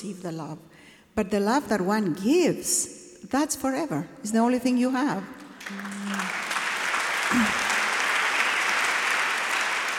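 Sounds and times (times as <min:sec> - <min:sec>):
speech: 0:00.0 - 0:06.2
audience applause: 0:05.6 - 0:09.9.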